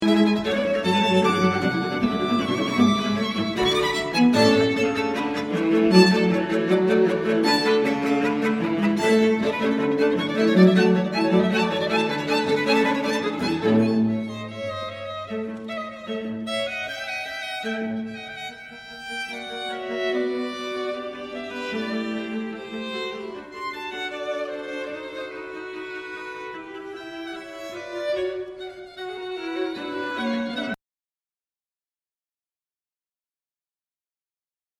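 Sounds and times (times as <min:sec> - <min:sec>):
string quartet: 0:00.0 - 0:30.8.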